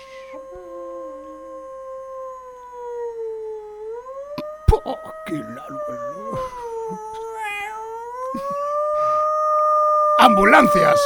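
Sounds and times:
several wolves howling together: 0.0s - 11.0s
speech: 4.8s - 7.3s, 8.3s - 8.7s, 10.2s - 11.0s.

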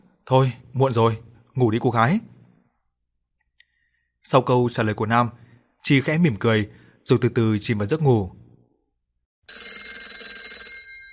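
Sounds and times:
speech: 0.3s - 2.3s, 4.2s - 8.4s
morning alarm clock bell ringing: 9.5s - 11.1s.

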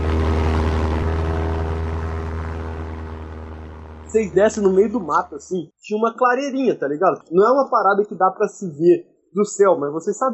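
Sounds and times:
propeller airplane flying: 0.0s - 5.0s
speech: 4.1s - 10.3s.

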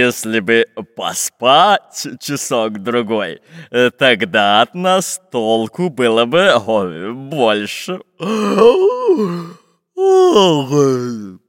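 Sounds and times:
speech: 0.0s - 11.4s
wide yawn: 8.2s - 11.4s.

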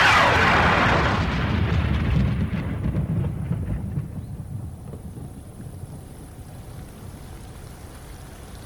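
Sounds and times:
thunder rumbling: 0.0s - 8.6s.

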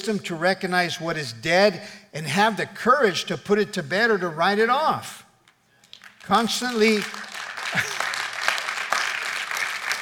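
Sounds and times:
speech: 0.0s - 5.2s, 6.3s - 8.0s
audience applause: 6.7s - 10.0s.

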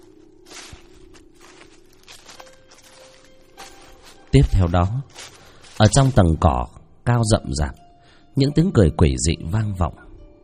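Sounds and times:
footsteps rustling through dry leaves: 0.0s - 6.8s
quiet steady hum: 0.0s - 7.2s
speech: 4.4s - 5.2s, 5.8s - 7.8s, 8.4s - 10.0s.

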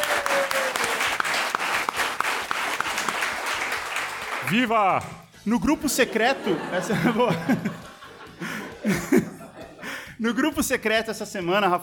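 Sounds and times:
applause: 0.0s - 5.2s
speech: 4.5s - 9.2s, 10.2s - 11.8s
laughter: 5.8s - 10.1s.

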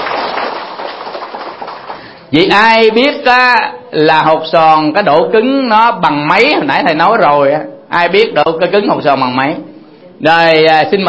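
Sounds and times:
audience applause: 0.0s - 2.2s
speech: 2.3s - 11.0s.

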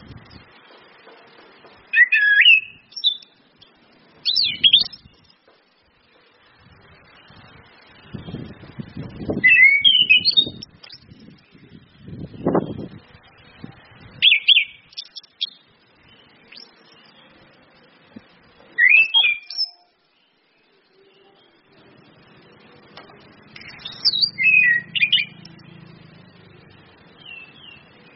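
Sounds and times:
orange-headed thrush song: 1.9s - 3.4s, 4.2s - 5.4s, 9.3s - 11.8s, 14.2s - 17.1s, 18.7s - 21.6s, 23.6s - 25.5s, 27.2s - 28.1s.

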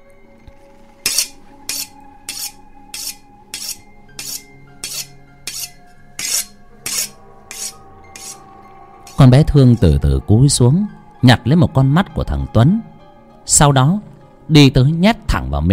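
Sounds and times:
machete scraped against iron bed frame, clanging: 1.0s - 8.4s, 9.1s - 9.3s
speech: 9.2s - 12.9s, 13.5s - 15.7s.

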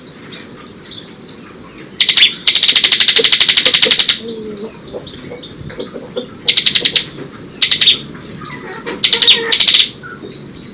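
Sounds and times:
bird song with high buzzy trills and downslurred whistles: 0.0s - 10.7s.

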